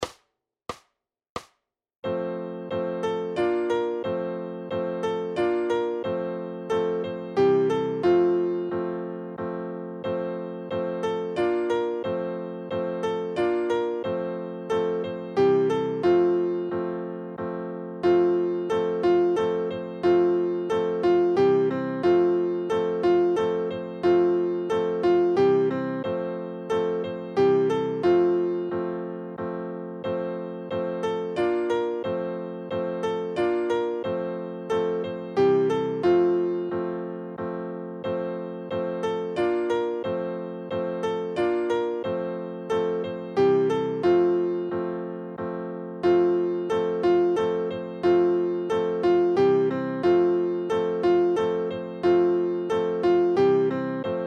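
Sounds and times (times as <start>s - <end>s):
carols on piano: 2.0s - 54.2s.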